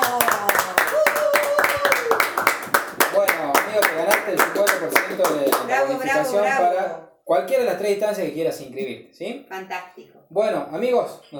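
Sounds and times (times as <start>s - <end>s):
applause: 0.0s - 5.7s
speech: 5.2s - 11.3s.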